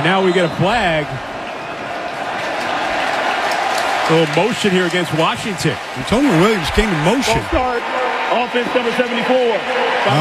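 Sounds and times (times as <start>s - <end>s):
speech: 0.0s - 1.3s, 4.1s - 10.1s
stadium crowd cheering at an American football game in Philadelphia: 0.0s - 10.1s.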